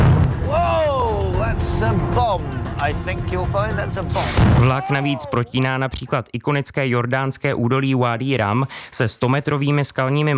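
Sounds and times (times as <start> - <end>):
deep rumbling explosions in reenacted attack on Ottoman train: 0.0 - 0.5, 3.4 - 4.8
people shouting and crying: 0.4 - 1.4, 3.8 - 5.6
speech: 1.8 - 10.3
sharp hissing burst: 4.0 - 4.7.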